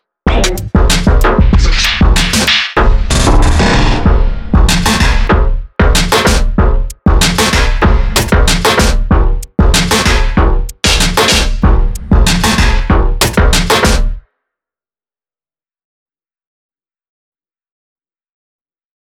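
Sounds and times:
smash drum kit hits: 0:00.3 - 0:14.2.

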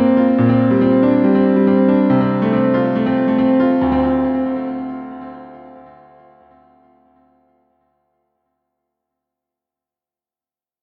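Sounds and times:
piano: 0:00.0 - 0:08.4.

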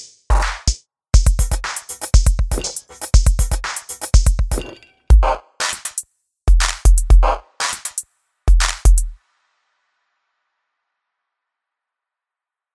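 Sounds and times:
randomized drum kits: 0:00.0 - 0:09.2.

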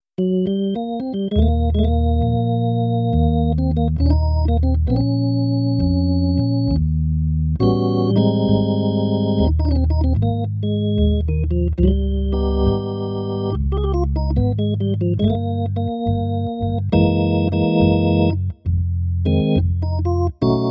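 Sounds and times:
ballad: 0:00.2 - 0:20.6.

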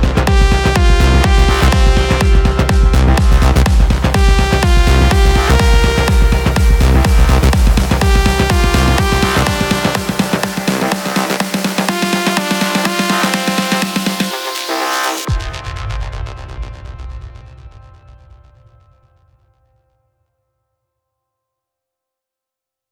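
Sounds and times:
melodic techno music: 0:00.0 - 0:15.7.

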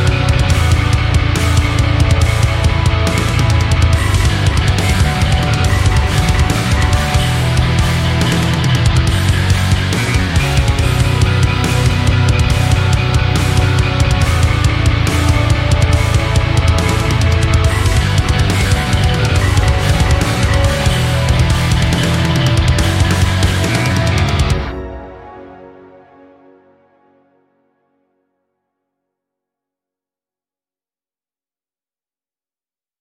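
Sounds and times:
buzzer bass: 0:00.0 - 0:24.6.

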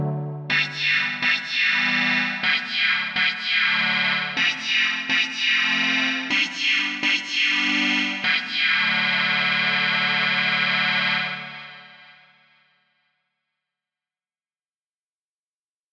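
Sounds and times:
synth pads: 0:00.0 - 0:12.1.

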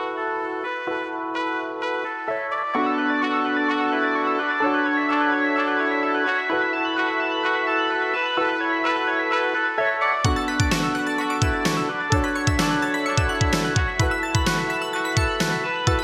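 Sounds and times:
modern disco music: 0:00.1 - 0:16.0.

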